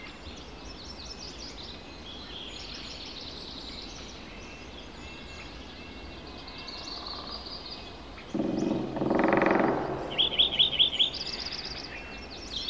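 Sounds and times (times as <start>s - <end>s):
Sierras ambience: 8.3s - 12.5s.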